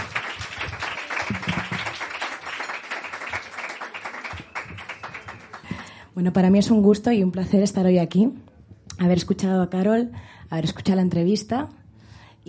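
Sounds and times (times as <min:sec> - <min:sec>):
audience applause: 0:00.0 - 0:05.9
speech: 0:06.2 - 0:08.4, 0:09.0 - 0:11.8.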